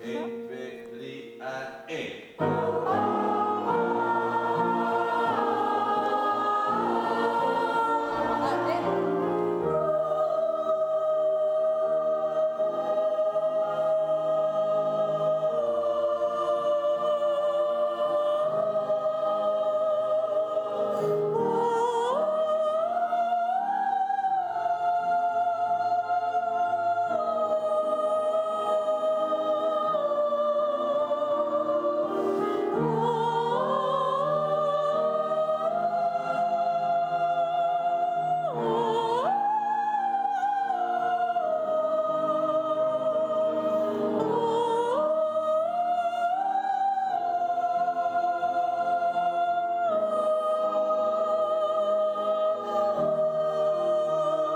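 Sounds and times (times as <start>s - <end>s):
music: 2.4s - 54.5s.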